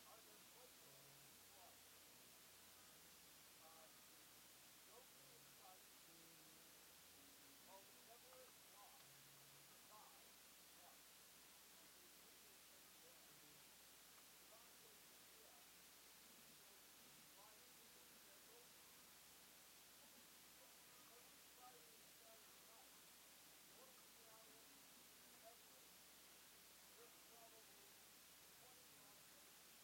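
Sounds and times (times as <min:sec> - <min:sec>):
background noise mix: 0:00.0 - 0:29.8.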